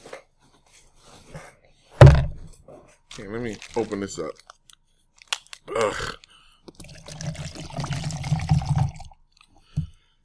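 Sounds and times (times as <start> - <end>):
soft knock: 2.0 - 2.5
speech: 3.2 - 4.5, 5.8 - 6.2
liquid pouring into a container: 6.7 - 9.2.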